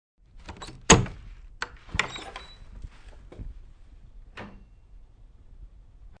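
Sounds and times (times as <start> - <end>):
old screen door creaking open slightly: 0.4 - 2.7
old screen door shutting: 0.4 - 2.7, 4.3 - 4.7.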